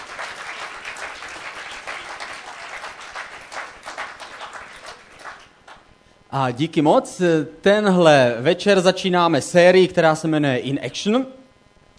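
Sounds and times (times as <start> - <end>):
audience applause: 0.0 - 5.8
speech: 6.3 - 11.4.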